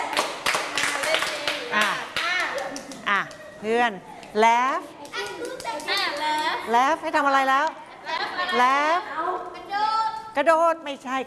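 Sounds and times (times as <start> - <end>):
hand clapping in a children's class game: 0.0 - 3.5, 5.0 - 6.7
speech: 3.6 - 7.8, 8.5 - 9.1, 10.4 - 11.2.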